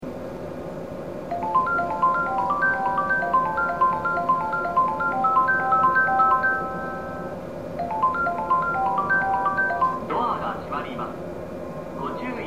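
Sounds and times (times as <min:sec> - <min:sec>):
melody: 0:01.3 - 0:10.4.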